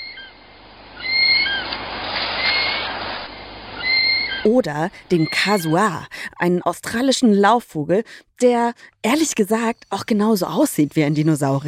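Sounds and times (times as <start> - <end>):
kiwi bird call: 0.0 - 0.4, 1.0 - 3.1, 3.8 - 4.5
speech: 4.4 - 11.6.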